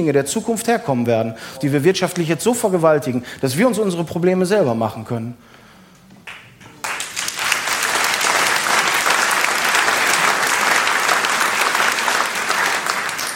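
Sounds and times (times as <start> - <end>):
speech: 0.0 - 5.6
audience applause: 6.3 - 13.3.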